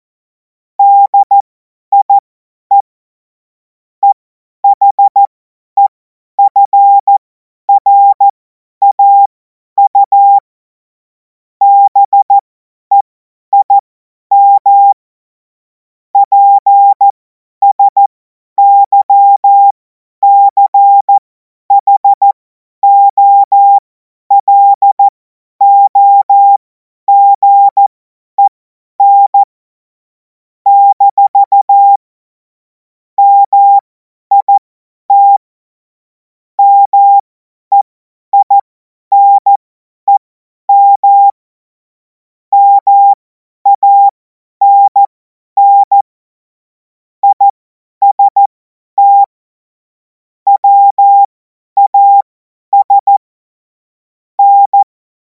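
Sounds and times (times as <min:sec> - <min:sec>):
CW Morse code beeps: 0:00.8 - 0:01.4, 0:02.0 - 0:02.9, 0:04.0 - 0:10.4, 0:11.6 - 0:15.0, 0:16.2 - 0:29.5, 0:30.7 - 0:32.0, 0:33.2 - 0:35.4, 0:36.6 - 0:41.4, 0:42.5 - 0:46.1, 0:47.2 - 0:49.4, 0:50.5 - 0:53.2, 0:54.4 - 0:54.9.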